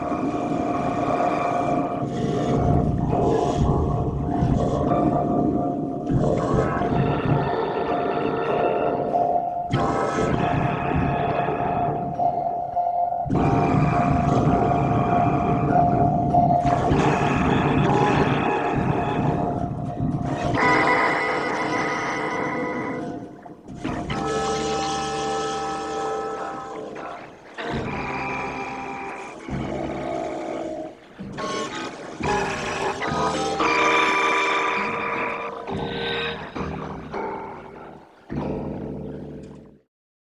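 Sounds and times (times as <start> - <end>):
ensemble playing: 0.0 - 39.8.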